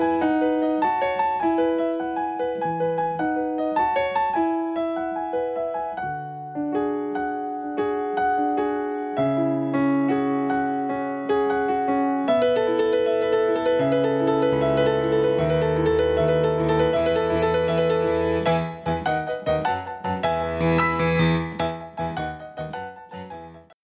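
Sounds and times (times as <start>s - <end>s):
inspirational piano music: 0.0s - 23.8s.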